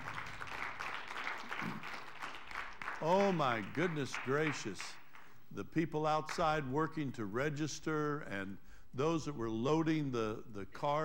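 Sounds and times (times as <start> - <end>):
audience applause: 0.0 - 4.6
speech: 3.0 - 11.0.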